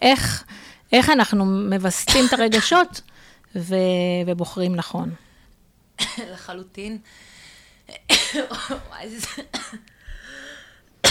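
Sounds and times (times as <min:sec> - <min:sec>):
speech: 0:00.0 - 0:05.2, 0:06.1 - 0:07.3, 0:07.9 - 0:09.9
nervous woman coughing: 0:02.1 - 0:02.9, 0:06.0 - 0:06.5, 0:07.9 - 0:09.9
nervous woman clearing her throat: 0:08.0 - 0:09.8.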